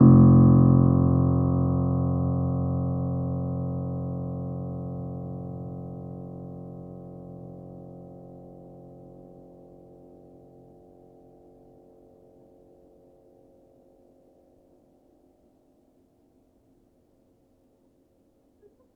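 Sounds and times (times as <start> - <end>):
upright piano: 0.0 - 7.6.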